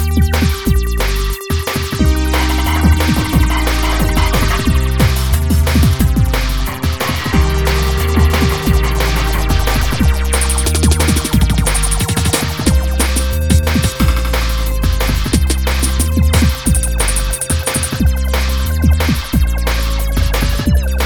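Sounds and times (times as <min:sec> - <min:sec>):
intense industrial electronic rhythm: 0:00.2 - 0:21.0.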